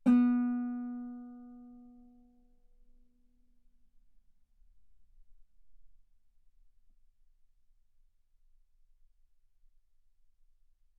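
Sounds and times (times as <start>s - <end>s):
guitar note B3: 0.0s - 1.8s.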